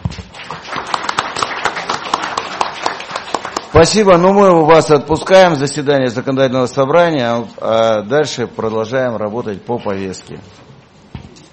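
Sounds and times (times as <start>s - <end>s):
applause: 0.3s - 4.2s
speech: 3.7s - 10.6s.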